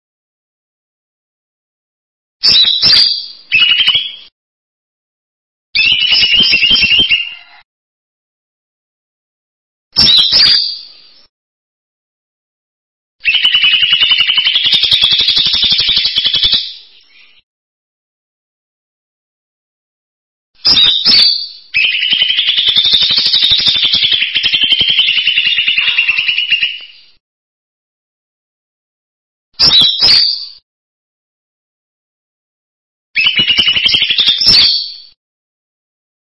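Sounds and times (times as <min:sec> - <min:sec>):
bird song: 0:02.4 - 0:04.3, 0:05.8 - 0:07.6, 0:10.0 - 0:11.3, 0:13.2 - 0:17.5, 0:20.6 - 0:27.2, 0:29.6 - 0:30.6, 0:33.2 - 0:35.2.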